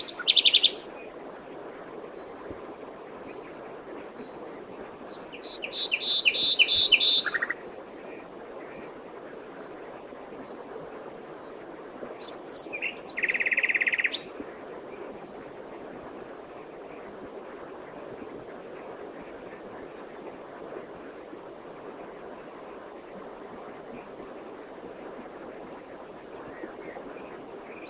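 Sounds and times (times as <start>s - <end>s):
common nightingale Luscinia megarhynchos singing: 5.1s - 7.6s, 12.2s - 14.3s.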